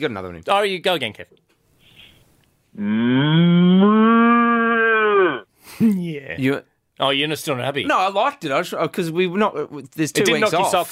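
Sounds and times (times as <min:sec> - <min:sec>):
speech: 0:00.0 - 0:01.4, 0:02.8 - 0:04.2, 0:05.8 - 0:10.9
cow mooing: 0:02.9 - 0:05.4.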